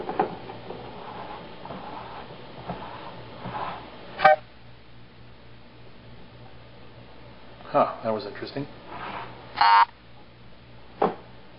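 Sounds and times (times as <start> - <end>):
speech: 0.2 - 0.4, 7.7 - 8.9
scanner error beep: 9.6 - 9.9.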